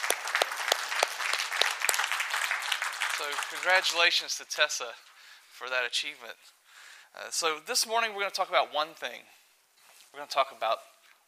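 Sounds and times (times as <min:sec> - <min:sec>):
audience applause congratulating a swim team leader at a morning gathering: 0:00.0 - 0:04.2
speech: 0:03.2 - 0:09.4, 0:10.1 - 0:10.9.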